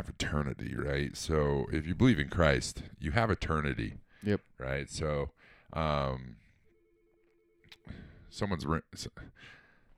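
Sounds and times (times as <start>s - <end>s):
speech: 0.0s - 6.4s, 7.9s - 9.6s
telephone ringing: 6.6s - 7.8s.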